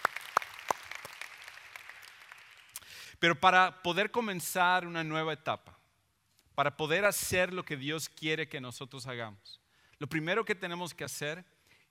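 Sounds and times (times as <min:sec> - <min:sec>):
sparse audience applause: 0:00.0 - 0:02.8
speech: 0:03.2 - 0:05.8, 0:06.6 - 0:11.8.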